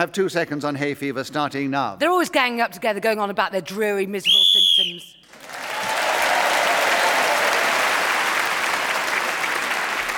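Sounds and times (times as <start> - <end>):
speech: 0.0 - 5.6
audience clapping: 5.2 - 10.1.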